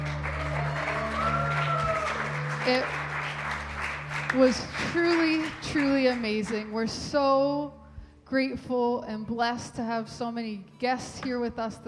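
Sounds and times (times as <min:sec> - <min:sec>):
church congregation applauding at a Christmas service: 0:00.0 - 0:06.7
speech: 0:02.6 - 0:03.0, 0:04.3 - 0:11.8.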